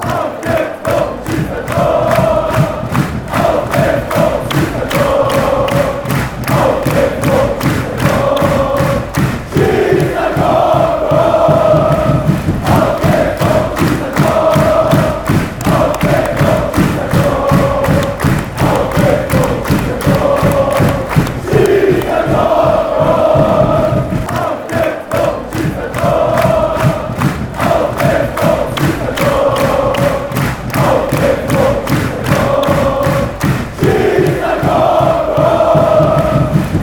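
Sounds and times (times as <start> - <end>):
football fans chanting after a goal: 0.0 - 36.8.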